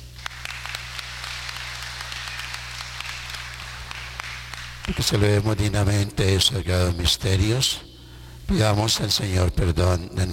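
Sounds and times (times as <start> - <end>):
applause: 0.0 - 5.4
speech: 4.9 - 7.9, 8.5 - 10.3.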